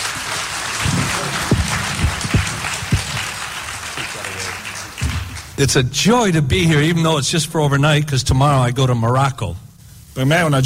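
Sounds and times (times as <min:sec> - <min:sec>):
crowd applauding: 0:00.0 - 0:05.6
low thumps: 0:00.8 - 0:03.8
speech: 0:05.6 - 0:09.6, 0:10.2 - 0:10.6.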